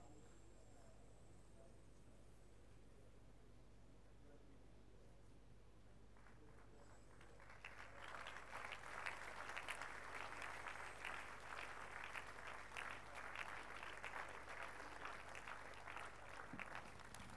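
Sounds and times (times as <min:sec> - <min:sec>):
audience clapping in applause: 0:06.2 - 0:17.3.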